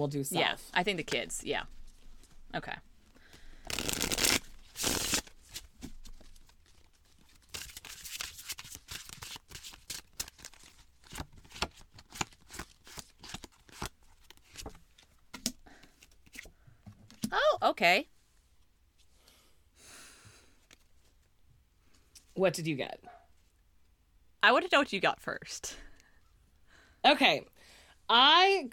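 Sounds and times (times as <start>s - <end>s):
speech: 0.0s - 1.8s, 2.5s - 2.9s, 17.8s - 18.1s, 22.4s - 23.2s, 24.4s - 25.9s, 27.0s - 27.5s, 28.1s - 28.7s
deck of cards riffle shuffling: 3.7s - 14.8s.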